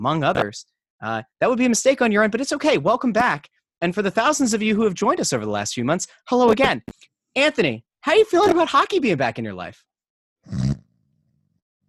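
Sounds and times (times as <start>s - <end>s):
speech: 0.0s - 10.7s
snoring: 10.5s - 10.9s.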